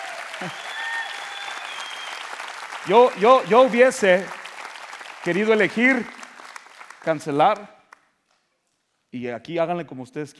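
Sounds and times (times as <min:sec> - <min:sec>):
audience applauding: 0:00.0 - 0:08.0
speech: 0:00.4 - 0:00.7, 0:02.8 - 0:04.4, 0:05.2 - 0:06.2, 0:07.0 - 0:07.8, 0:09.1 - 0:10.3.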